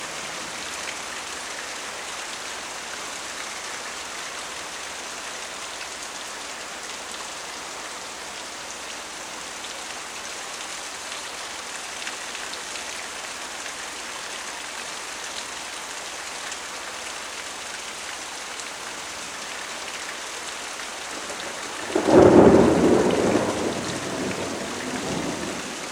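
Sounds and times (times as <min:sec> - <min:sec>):
gentle rain: 0:00.0 - 0:25.8.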